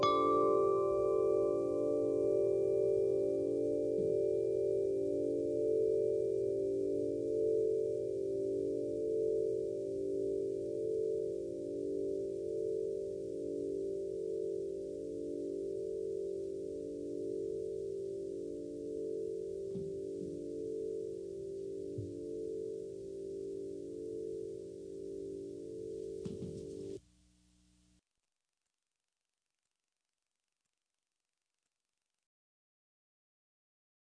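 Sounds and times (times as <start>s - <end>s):
wind chime: 0.0s - 27.0s.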